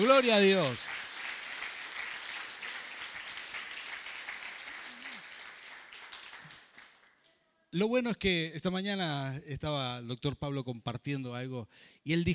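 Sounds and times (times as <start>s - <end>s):
speech: 0.0s - 1.0s, 7.7s - 12.3s
audience applauding: 0.0s - 7.3s.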